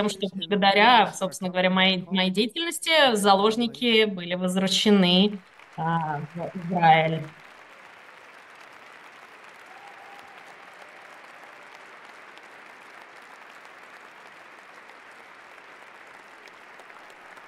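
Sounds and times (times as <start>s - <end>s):
speech: 0.0s - 7.4s
enthusiastic applause: 4.6s - 17.4s.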